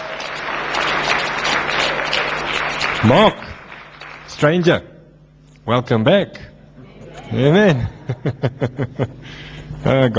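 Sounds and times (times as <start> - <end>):
church congregation applauding after praise and worship: 0.0 - 4.7
speech: 3.0 - 3.4, 4.4 - 4.9, 5.6 - 6.5, 7.3 - 10.1
laughter: 7.6 - 9.5.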